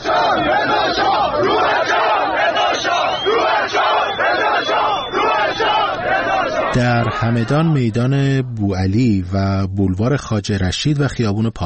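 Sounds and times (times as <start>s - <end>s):
protest crowd chanting at Dastgheib Square in Qom, Iran: 0.0s - 8.2s
speech: 7.2s - 11.6s.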